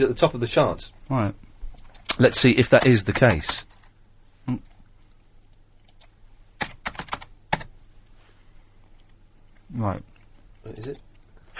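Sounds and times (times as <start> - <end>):
speech: 0.0 - 1.4, 2.1 - 3.7, 4.5 - 4.7, 9.7 - 11.0
computer keyboard typing a name into a Google search: 1.8 - 3.9, 5.8 - 7.7.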